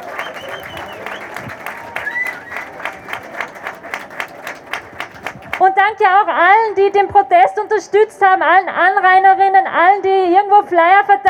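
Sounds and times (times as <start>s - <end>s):
crowd applause at outdoor rally: 0.0s - 6.6s
speech: 5.8s - 11.2s.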